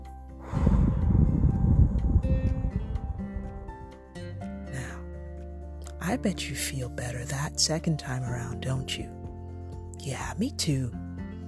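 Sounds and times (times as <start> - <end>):
deep breath in and out: 0.4 - 2.4
speech: 6.1 - 9.2, 10.0 - 11.0.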